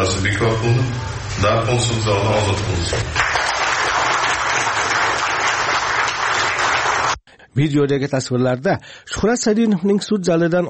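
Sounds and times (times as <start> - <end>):
speech: 0.0 - 3.3, 7.6 - 10.6
applause in a courtroom after a release decision: 3.0 - 7.2.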